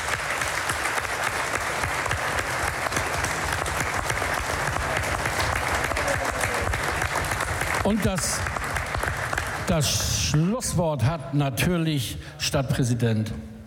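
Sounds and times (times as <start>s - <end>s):
audience applause: 0.0s - 10.6s
speech: 7.9s - 8.6s, 9.7s - 13.6s.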